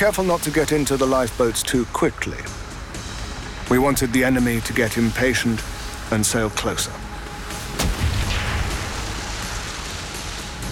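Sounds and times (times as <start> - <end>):
speech: 0.0 - 2.6, 3.7 - 7.1
steady hiss of noise: 0.0 - 10.7
U-boat deck gun firing warning shots: 7.8 - 8.6
deep rumbling boom: 7.8 - 9.7.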